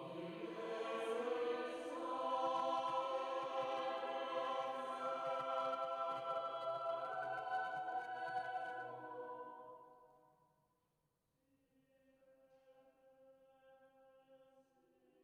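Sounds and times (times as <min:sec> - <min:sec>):
choir singing: 0:00.0 - 0:09.8.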